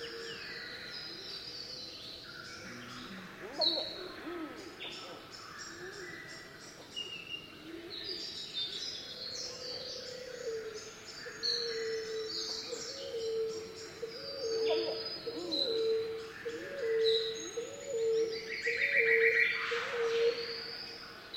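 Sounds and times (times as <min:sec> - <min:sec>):
Pacific emerald dove singing in tropical rainforest: 0:02.8 - 0:06.0, 0:11.6 - 0:20.5.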